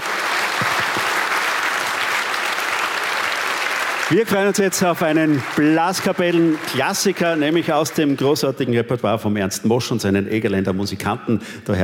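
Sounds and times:
audience applause: 0:00.0 - 0:08.5
speech: 0:04.1 - 0:11.8.

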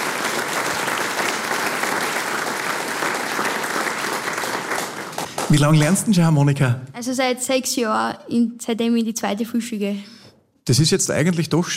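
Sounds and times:
audience applause: 0:00.0 - 0:06.2
speech: 0:05.5 - 0:11.7.

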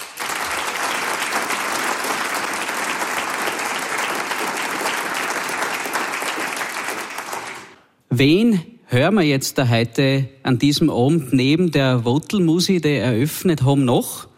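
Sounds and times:
audience applause: 0:00.0 - 0:07.8
speech: 0:08.2 - 0:14.3.

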